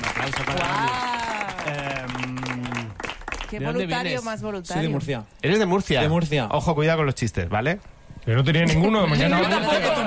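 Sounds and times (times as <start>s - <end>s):
studio audience applause: 0.0s - 3.8s
speech: 0.2s - 2.4s, 3.5s - 10.0s.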